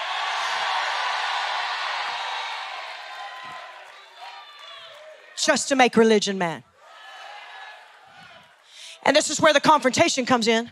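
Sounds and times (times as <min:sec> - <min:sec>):
audience screaming and cheering: 0:00.0 - 0:05.4, 0:06.8 - 0:08.7
speech: 0:05.4 - 0:06.7, 0:09.2 - 0:10.7.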